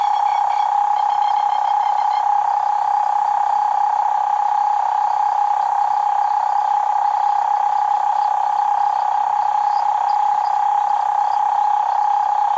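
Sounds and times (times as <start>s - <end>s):
cane toad call: 0.0s - 2.9s, 8.1s - 12.5s
faint hiss of other night sounds: 0.0s - 12.5s.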